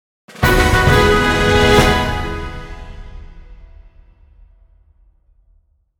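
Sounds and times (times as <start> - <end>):
recruitment fanfare: 0.3 - 4.0.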